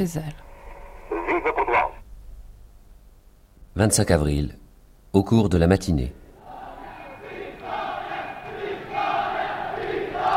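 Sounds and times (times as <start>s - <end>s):
speech: 0.0s - 0.5s, 3.8s - 6.2s
large crowd chanting victory cry alongside a military column: 6.2s - 10.3s.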